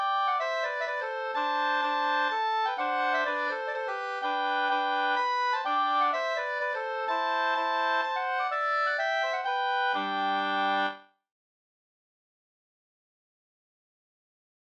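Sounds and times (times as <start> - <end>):
Rorospols folk dance tune: 0.0 - 11.0.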